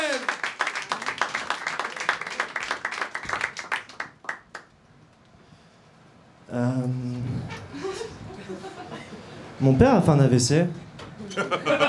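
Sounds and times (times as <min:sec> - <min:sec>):
audience clapping: 0:00.0 - 0:04.8
speech: 0:06.5 - 0:07.6, 0:09.6 - 0:10.8
laughter: 0:07.5 - 0:09.4, 0:11.2 - 0:11.8.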